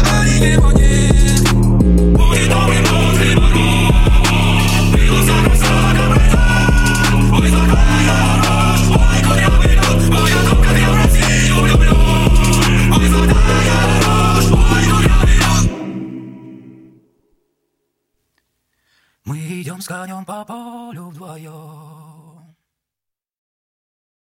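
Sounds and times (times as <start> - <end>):
phonk music: 0.0 - 17.0.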